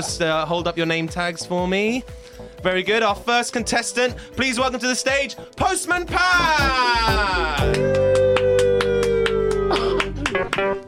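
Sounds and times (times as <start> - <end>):
speech: 0.0 - 8.0
one person clapping: 7.6 - 10.8.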